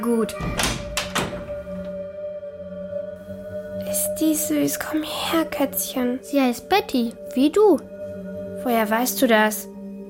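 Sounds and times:
speech: 0:00.0 - 0:00.8, 0:04.0 - 0:07.9, 0:08.6 - 0:09.7
door being unlocked and opened: 0:00.3 - 0:02.0.

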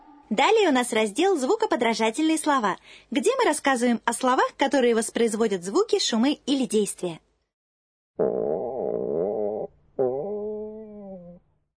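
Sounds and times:
speech: 0:00.3 - 0:07.2
stomach growling: 0:08.2 - 0:11.4.

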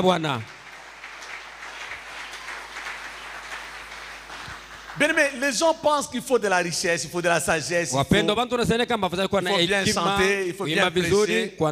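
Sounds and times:
speech: 0:00.0 - 0:00.5, 0:05.0 - 0:11.7
congregation applauding during a church service: 0:00.0 - 0:06.1.

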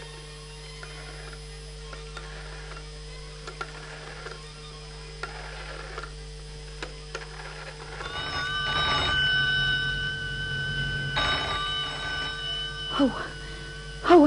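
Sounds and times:
telephone ringing: 0:02.2 - 0:02.8, 0:03.6 - 0:04.5, 0:05.2 - 0:06.2, 0:06.8 - 0:14.2.

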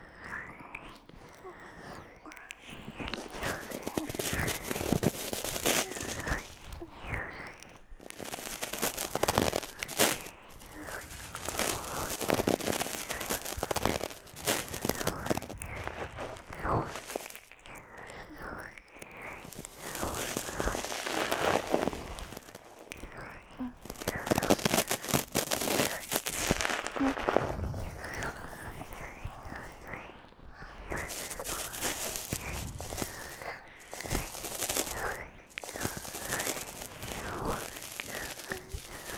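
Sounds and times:
soft whispering: 0:00.0 - 0:39.1
cream being massaged onto a left ear after ear cleaning: 0:02.8 - 0:17.6, 0:19.4 - 0:28.4, 0:30.9 - 0:39.1.

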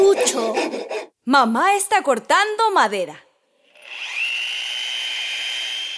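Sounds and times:
speech: 0:01.3 - 0:03.3
power drill drilling into a wall: 0:03.6 - 0:05.9.

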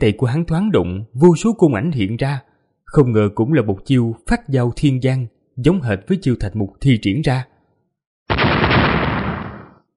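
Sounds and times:
speech: 0:00.0 - 0:07.5
rumbling run of explosions: 0:08.3 - 0:09.8.

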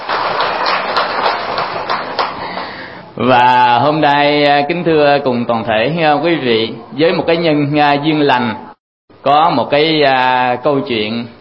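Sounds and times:
audience applause: 0:00.0 - 0:02.8
speech: 0:03.2 - 0:08.6, 0:09.2 - 0:11.3.

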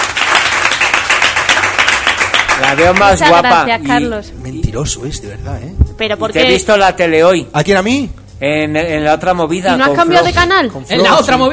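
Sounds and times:
many hands clapping: 0:00.0 - 0:03.4
speech: 0:02.7 - 0:11.5.

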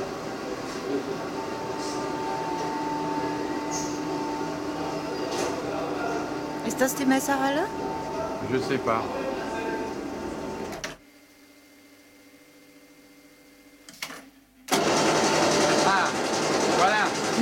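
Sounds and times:
printing machinery roaring in a print shop: 0:00.0 - 0:11.0, 0:14.7 - 0:17.4
speech: 0:06.7 - 0:09.2.

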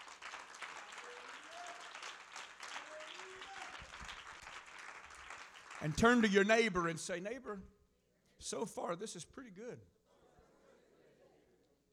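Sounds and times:
voices rising over the clapping: 0:00.0 - 0:06.0
congregation clapping hands during a church service: 0:00.0 - 0:07.2
speech: 0:05.8 - 0:07.8, 0:08.4 - 0:10.0.

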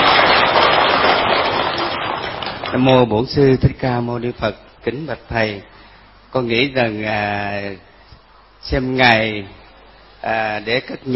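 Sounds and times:
audience applause: 0:00.0 - 0:02.8
speech: 0:02.8 - 0:07.9, 0:08.6 - 0:09.6, 0:10.2 - 0:11.1.

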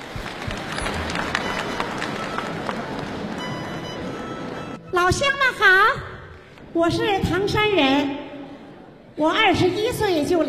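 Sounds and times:
crowd applauding: 0:00.0 - 0:04.8
speech: 0:05.1 - 0:06.1, 0:06.8 - 0:08.2, 0:09.2 - 0:10.4.

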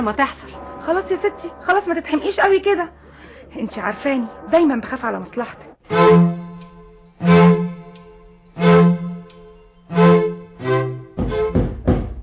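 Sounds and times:
speech: 0:00.0 - 0:06.4
low hum: 0:00.0 - 0:11.0
heavy knocking on a door: 0:11.2 - 0:12.2.

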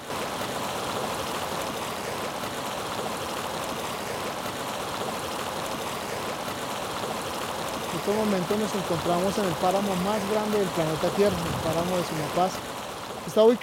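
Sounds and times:
flowing stream water: 0:00.0 - 0:13.6
speech: 0:08.1 - 0:13.6.

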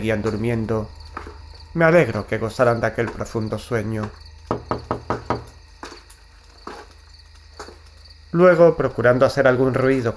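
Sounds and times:
speech: 0:00.0 - 0:01.0, 0:01.8 - 0:04.9, 0:08.3 - 0:10.1
knocking on a door: 0:04.0 - 0:05.6.

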